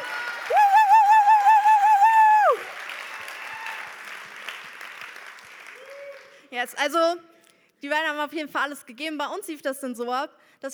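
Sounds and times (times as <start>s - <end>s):
audience applause: 0.0s - 6.4s
speech: 6.6s - 10.7s.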